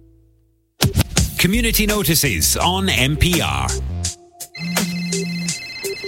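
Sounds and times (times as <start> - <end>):
speech: 1.4 - 4.0
telephone ringing with a bright electronic tone: 4.5 - 6.0.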